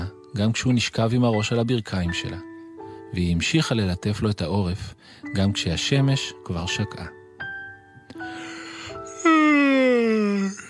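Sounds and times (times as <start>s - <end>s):
speech: 0.4s - 2.5s, 3.1s - 7.2s
voice imitating a big drawn-out yawn: 8.5s - 10.6s.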